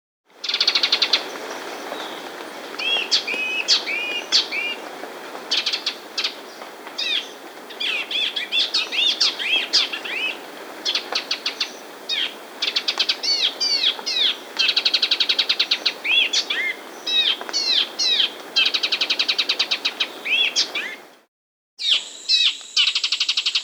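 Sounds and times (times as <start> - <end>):
half-collared gnatwren singing trills and chips in South America: 0.4 - 21.1, 21.8 - 23.6.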